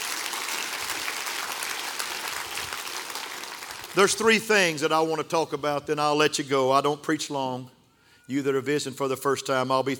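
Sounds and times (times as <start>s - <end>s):
audience clapping hands: 0.0s - 4.8s
speech: 4.0s - 9.9s.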